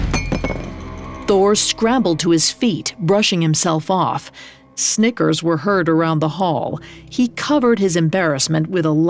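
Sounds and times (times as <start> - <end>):
mug hitting the ground with a metallic clank: 0.1 - 0.8
speech: 1.3 - 9.0.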